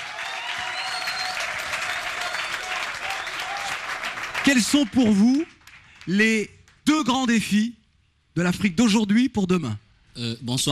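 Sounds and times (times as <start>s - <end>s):
audience applause: 0.0s - 6.3s
speech: 4.4s - 7.8s, 8.4s - 10.6s.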